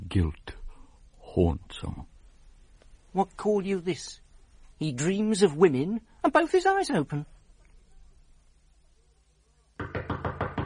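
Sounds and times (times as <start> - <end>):
speech: 0.1 - 0.4, 1.3 - 2.1, 3.1 - 4.2, 4.8 - 7.3
knocking on a door: 9.8 - 10.6.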